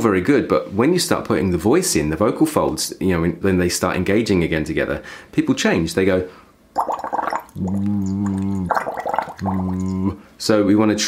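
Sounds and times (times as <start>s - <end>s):
speech: 0.0s - 6.9s, 7.6s - 11.0s
bubbling through a straw into water: 6.8s - 10.2s.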